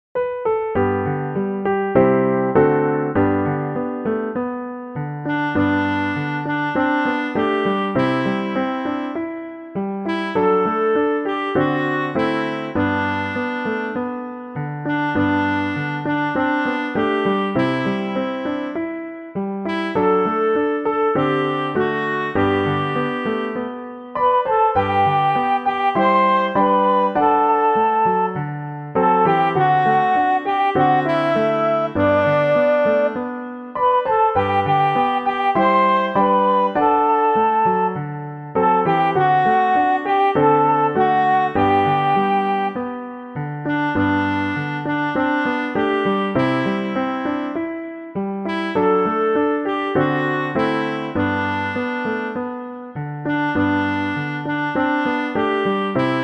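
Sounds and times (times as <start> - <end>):
instrumental music: 0.2 - 56.2.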